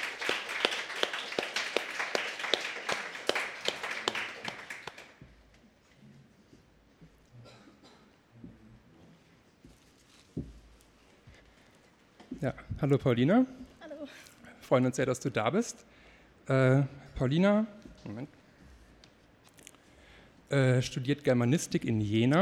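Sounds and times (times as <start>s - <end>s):
audience applause: 0.0s - 5.2s
speech: 12.4s - 13.6s, 14.7s - 18.4s, 20.5s - 22.4s.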